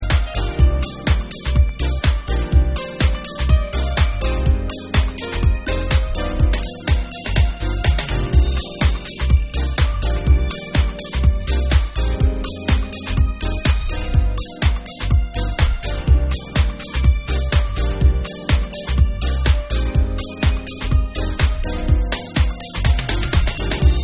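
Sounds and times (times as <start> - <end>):
instrumental mix: 0.0 - 24.0.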